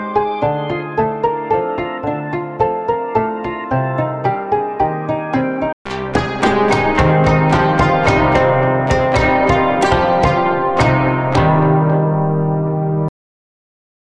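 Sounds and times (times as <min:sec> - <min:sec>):
plucked strings: 0:00.0 - 0:13.1.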